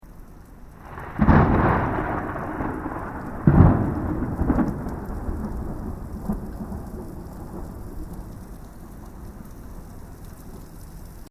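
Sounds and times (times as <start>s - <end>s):
rain: 0.0s - 11.2s
close thunder: 0.8s - 9.5s.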